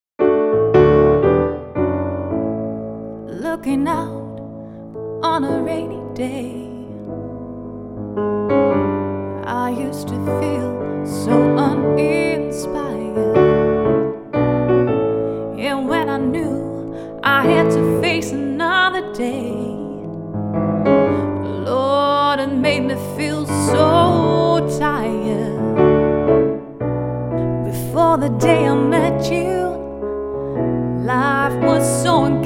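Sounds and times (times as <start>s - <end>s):
piano: 0.2s - 32.4s
voice: 3.3s - 4.3s, 5.2s - 6.9s, 9.4s - 13.5s, 15.6s - 20.0s, 21.4s - 25.7s, 27.7s - 29.8s.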